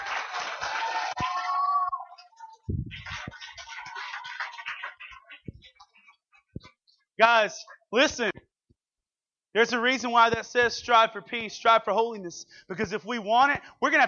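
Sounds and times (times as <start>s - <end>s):
audience clapping: 0.0s - 5.9s
speech: 7.2s - 8.3s, 9.6s - 14.0s.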